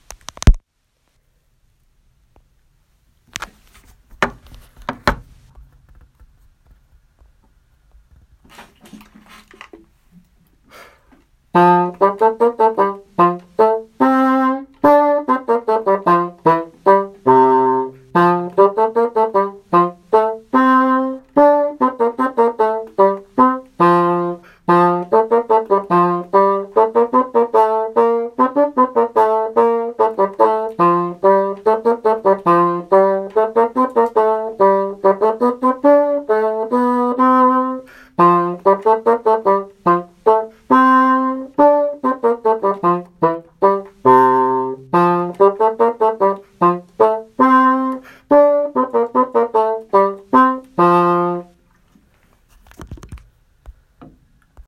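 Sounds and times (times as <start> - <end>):
bassoon: 11.5 - 51.6.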